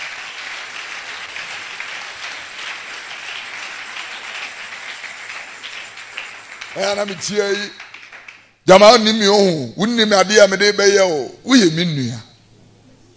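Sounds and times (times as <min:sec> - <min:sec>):
audience clapping: 0:00.0 - 0:08.6
speech: 0:06.8 - 0:07.8, 0:08.7 - 0:12.3.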